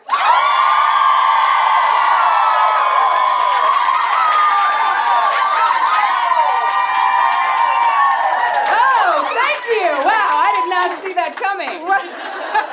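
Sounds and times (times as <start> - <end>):
live audience cheering and whooping as hosts come on stage: 0.0 - 11.0
audience laughter: 11.9 - 12.7.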